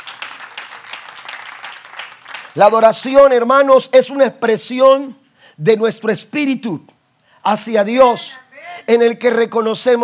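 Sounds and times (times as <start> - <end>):
audience applause: 0.0 - 2.6
speech: 2.6 - 10.0.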